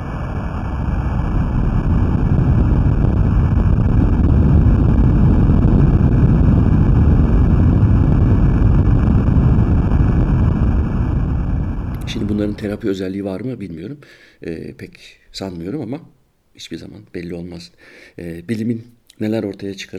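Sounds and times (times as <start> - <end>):
2011 Japan earthquake recorded by underwater hydrophones: 0.0 - 12.9
speech: 12.5 - 19.9.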